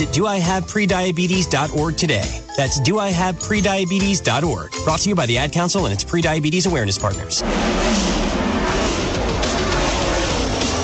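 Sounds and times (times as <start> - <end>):
speech: 0.0 - 8.1
Ford Mustang stock car race engine roaring while driving: 7.3 - 10.8.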